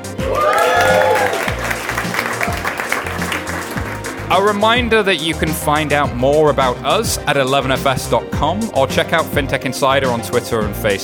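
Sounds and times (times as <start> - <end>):
audience cheers and whoops: 0.1 - 3.3
crowd applauding: 0.2 - 4.8
low rhythmic thumping: 1.5 - 7.3
speech: 4.3 - 11.0.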